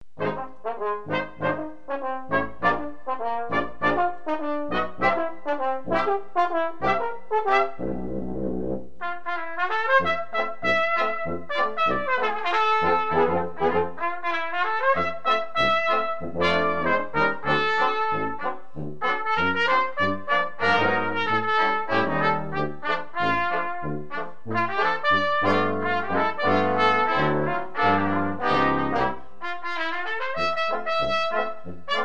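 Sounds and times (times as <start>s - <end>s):
Dixieland medley: 0.2s - 32.0s.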